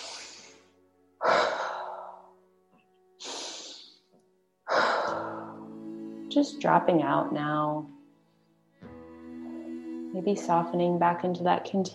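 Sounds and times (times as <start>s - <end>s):
deep slow breaths during a guided breathing exercise: 0.0s - 2.4s, 3.2s - 4.1s, 4.7s - 5.8s
speech: 6.3s - 8.0s, 10.2s - 11.9s.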